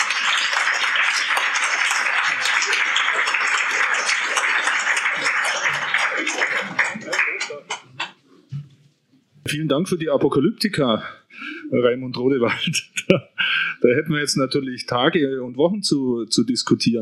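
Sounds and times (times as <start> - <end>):
audience applause: 0.0 - 8.1
laughter: 1.4 - 8.1, 12.4 - 14.0
speech: 9.6 - 17.0.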